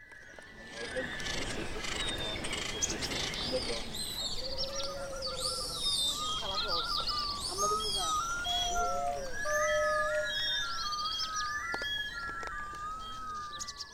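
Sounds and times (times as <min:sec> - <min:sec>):
bird sounds in a music piece: 0:00.0 - 0:13.9.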